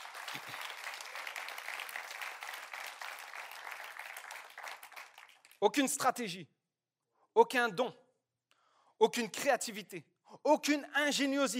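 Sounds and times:
audience applause: 0.0s - 5.6s
speech: 5.6s - 6.6s, 7.4s - 8.0s, 9.0s - 11.5s.

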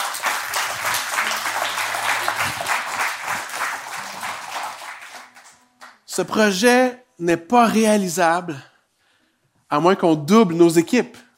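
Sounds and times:
crowd applause: 0.0s - 6.0s
speech: 6.2s - 8.7s, 9.7s - 11.2s.

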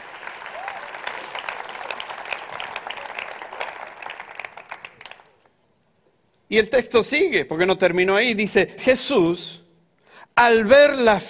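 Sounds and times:
audience applause: 0.0s - 5.5s
speech: 6.5s - 9.6s, 10.4s - 11.2s.

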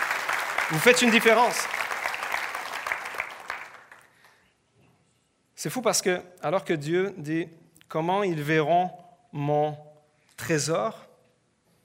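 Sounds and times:
audience applause: 0.0s - 4.3s
speech: 0.7s - 1.8s, 5.6s - 11.1s.

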